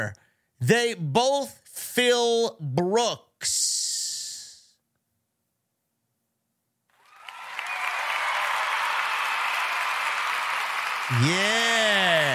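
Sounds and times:
speech: 0:00.0 - 0:03.9, 0:11.1 - 0:12.3
crowd applause after joke: 0:06.9 - 0:12.3.

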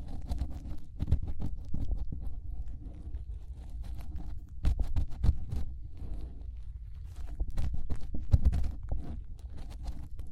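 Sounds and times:
fingers rubbing and cleaning inside an ear: 0:00.0 - 0:10.3
sharp scratchy crackles and pops: 0:00.0 - 0:10.3.

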